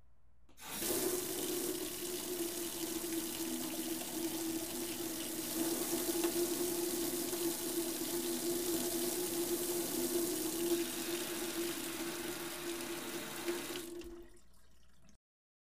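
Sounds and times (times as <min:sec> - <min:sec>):
water flowing into a metal sink: 0:00.6 - 0:15.2.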